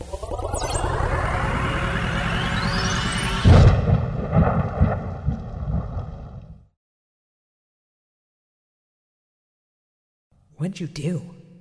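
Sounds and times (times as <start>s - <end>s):
rising electronic whine of a science-fiction pocket singularity grenade: 0.0s - 5.5s
science-fiction pocket singularity grenade explosion with crackling rumbles: 1.3s - 6.7s
speech: 10.6s - 11.4s.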